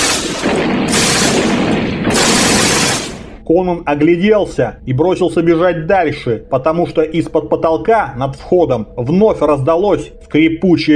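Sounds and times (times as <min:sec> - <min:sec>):
lightning crashing: 0:00.0 - 0:03.4
stone fragments falling: 0:00.0 - 0:03.4
speech: 0:03.5 - 0:10.9.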